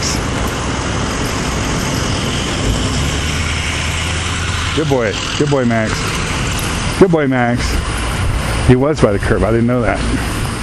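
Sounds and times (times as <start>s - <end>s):
car engine and road noise: 0.0s - 10.6s
speech: 4.8s - 6.1s, 7.0s - 7.8s, 8.7s - 10.4s.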